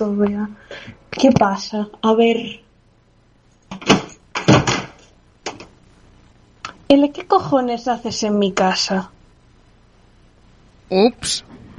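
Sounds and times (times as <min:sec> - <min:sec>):
speech: 0:00.0 - 0:02.6, 0:06.9 - 0:09.2, 0:10.9 - 0:11.6
heavy knocks on a door: 0:03.7 - 0:05.0
door opening: 0:03.7 - 0:05.7.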